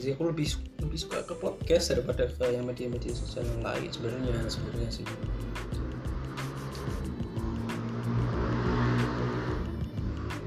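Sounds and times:
speech: 0.0s - 5.8s
loud vehicle exhaust: 3.9s - 10.4s.

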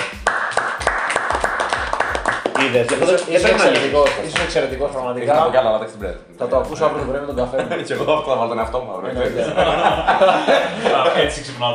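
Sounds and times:
hand clapping: 0.0s - 4.9s
speech: 2.7s - 11.7s
laughter: 7.4s - 11.7s.

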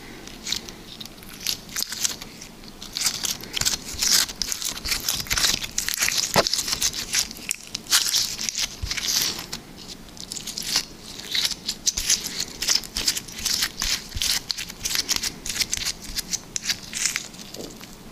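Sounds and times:
liquid slime squished: 0.2s - 18.1s.

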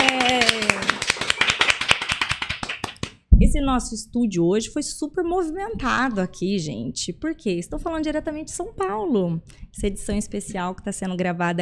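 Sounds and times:
short burst of applause with crisp hand claps: 0.0s - 3.2s
speech: 3.6s - 11.6s.

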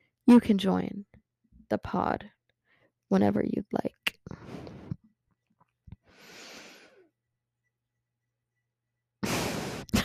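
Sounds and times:
speech: 0.3s - 1.1s, 1.7s - 2.4s, 3.1s - 4.0s
breathing into a microphone: 2.6s - 2.9s, 4.4s - 5.0s, 6.0s - 7.1s, 9.2s - 9.9s.

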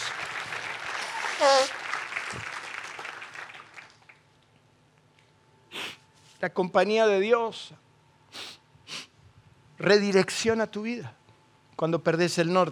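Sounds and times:
crowd cheering: 0.0s - 4.1s
audience applause: 0.0s - 4.2s
speech: 1.4s - 1.8s, 6.4s - 7.8s, 9.8s - 11.2s, 11.8s - 12.7s.

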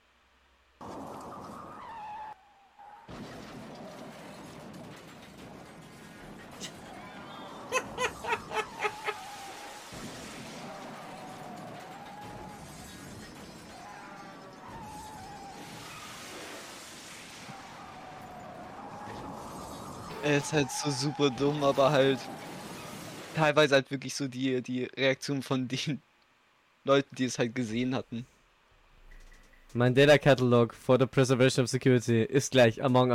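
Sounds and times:
prolonged car pile-up crash: 3.0s - 7.6s, 9.3s - 20.2s
laughter: 7.3s - 9.3s
speech: 20.2s - 22.5s, 23.4s - 26.1s, 26.8s - 28.3s, 29.7s - 33.1s.

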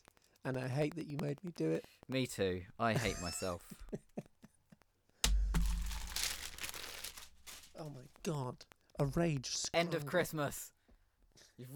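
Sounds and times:
speech: 0.4s - 4.0s, 8.2s - 10.8s, 11.6s - 11.7s
newspaper being crumpled: 5.3s - 8.1s.

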